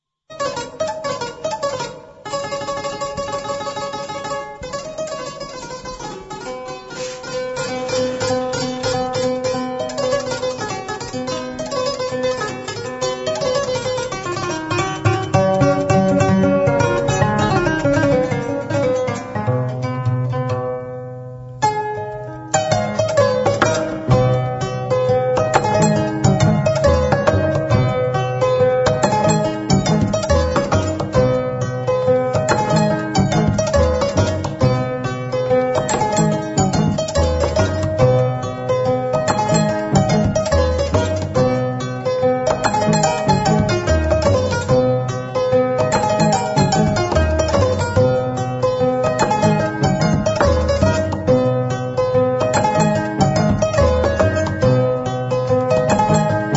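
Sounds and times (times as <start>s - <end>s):
kora from Gambia: 0.3s - 56.5s.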